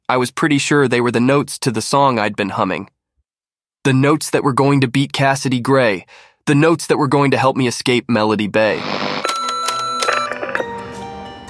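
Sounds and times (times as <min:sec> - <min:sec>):
speech: 0:00.1 - 0:03.0, 0:03.8 - 0:09.0
answering machine out-of-tape beep: 0:08.8 - 0:10.8.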